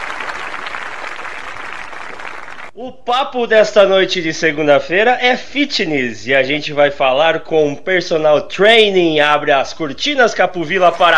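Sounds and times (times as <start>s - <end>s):
crowd applause: 0.0s - 2.8s
speech: 2.8s - 11.1s.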